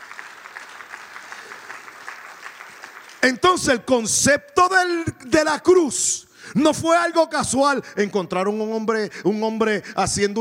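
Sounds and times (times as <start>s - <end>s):
audience applauding: 0.0s - 3.8s
speech: 3.2s - 10.3s.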